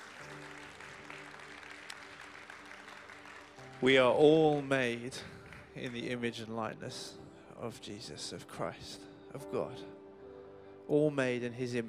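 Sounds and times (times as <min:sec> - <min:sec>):
audience round of applause: 0:00.0 - 0:06.1
speech: 0:03.8 - 0:10.0, 0:10.9 - 0:11.8.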